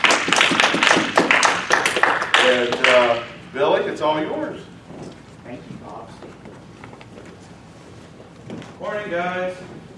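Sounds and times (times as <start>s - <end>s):
audience clapping: 0.0s - 3.2s
speech: 3.6s - 4.7s, 8.8s - 9.8s.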